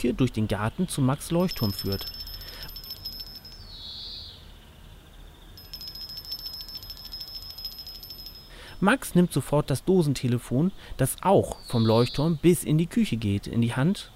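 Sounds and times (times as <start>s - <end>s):
speech: 0.0s - 2.2s, 8.8s - 14.1s
high-pitched electric bell ringing on a bell wire: 1.4s - 3.8s, 5.6s - 8.7s.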